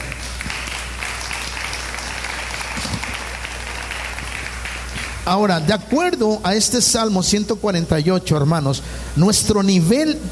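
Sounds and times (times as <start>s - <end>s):
audience applause: 0.0s - 5.3s
speech: 5.3s - 10.3s.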